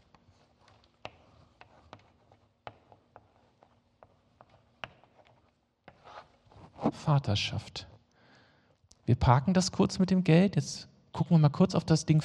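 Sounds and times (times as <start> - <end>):
pen scratching while writing a word: 0.0 - 7.0
speech: 6.9 - 7.9, 9.1 - 12.2.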